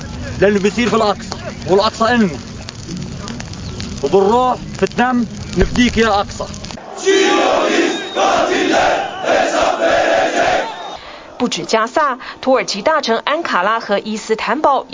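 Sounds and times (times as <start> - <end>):
speech: 0.4 - 3.0, 4.0 - 10.7, 11.4 - 14.9
protest crowd chanting: 6.8 - 12.0.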